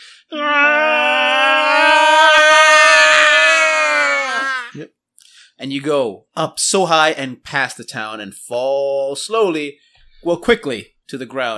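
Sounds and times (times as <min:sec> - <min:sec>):
group ascending yell: 0:00.4 - 0:04.8
speech: 0:05.6 - 0:11.5.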